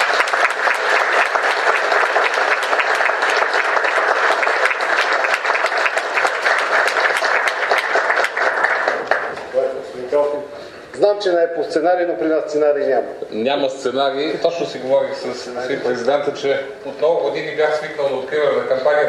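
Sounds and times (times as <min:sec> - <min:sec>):
crowd applause: 0:00.0 - 0:09.7
speech: 0:11.4 - 0:19.0.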